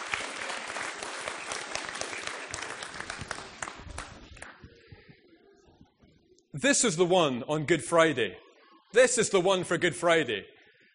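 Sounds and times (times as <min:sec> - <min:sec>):
crowd applause: 0:00.0 - 0:04.5
speech: 0:06.6 - 0:10.5.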